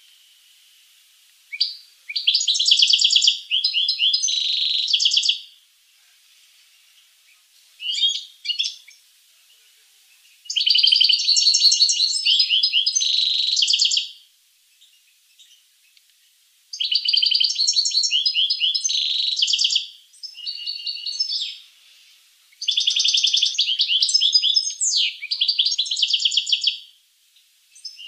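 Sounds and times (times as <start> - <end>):
finch song trills: 1.5 - 5.6, 7.4 - 14.2, 16.8 - 21.7, 22.5 - 28.0.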